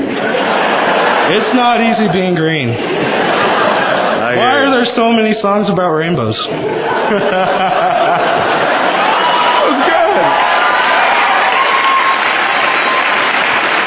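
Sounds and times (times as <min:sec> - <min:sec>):
crowd applauding: 0:00.0 - 0:05.1, 0:06.8 - 0:13.8
people chuckling: 0:00.0 - 0:05.1, 0:06.4 - 0:10.4
speech: 0:01.3 - 0:03.2, 0:04.4 - 0:08.4.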